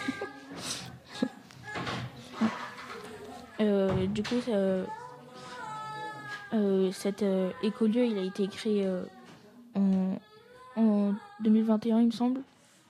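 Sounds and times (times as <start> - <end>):
girl crying outside: 0.0 - 2.6, 4.8 - 8.4
speech: 3.6 - 5.0, 6.5 - 9.2, 9.8 - 12.5.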